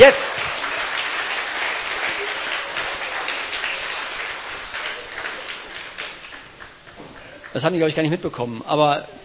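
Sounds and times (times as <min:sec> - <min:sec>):
speech: 0:00.0 - 0:00.7, 0:07.6 - 0:09.2
audience applauding the cooks: 0:00.0 - 0:08.1.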